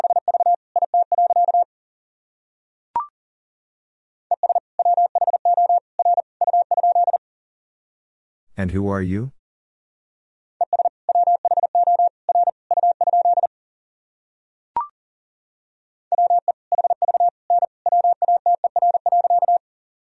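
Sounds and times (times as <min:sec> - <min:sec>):
Morse code beeps at 40 wpm: 0:00.0 - 0:01.6, 0:04.3 - 0:07.2, 0:10.6 - 0:13.5, 0:16.1 - 0:19.6
speech: 0:08.6 - 0:09.4.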